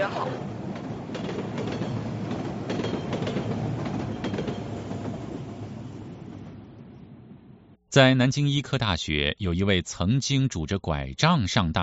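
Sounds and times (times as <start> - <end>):
speech: 0.0 - 0.6, 7.9 - 11.8
train rumbling at a railway station: 0.0 - 7.8
train wheels clicking on track: 0.2 - 5.4.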